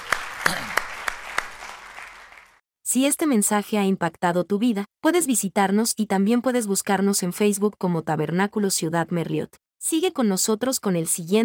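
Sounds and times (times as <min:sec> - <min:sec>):
applause: 0:00.0 - 0:02.6
speech: 0:02.9 - 0:11.4.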